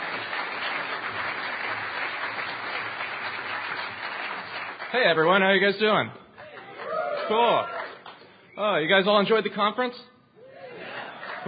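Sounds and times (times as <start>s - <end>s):
audience applause: 0.0s - 5.1s, 6.4s - 8.2s, 11.0s - 11.4s
speech: 4.9s - 6.2s, 7.3s - 7.8s, 8.6s - 10.1s.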